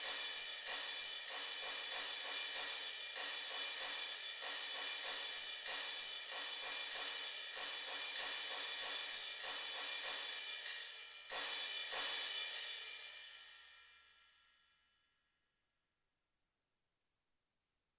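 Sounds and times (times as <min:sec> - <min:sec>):
suspended cymbal: 0:00.0 - 0:14.5
tambourine: 0:00.0 - 0:14.8.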